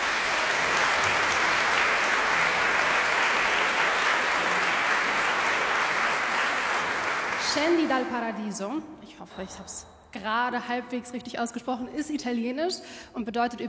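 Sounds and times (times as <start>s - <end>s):
audience applause after choir performance: 0.0s - 8.1s
speech: 7.6s - 13.6s.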